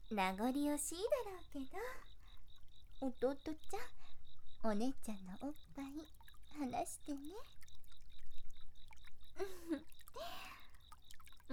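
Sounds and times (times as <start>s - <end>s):
water dripping: 0.0s - 11.5s
speech: 0.1s - 2.1s, 3.0s - 7.6s, 9.4s - 10.6s
shower water pouring: 5.7s - 11.5s.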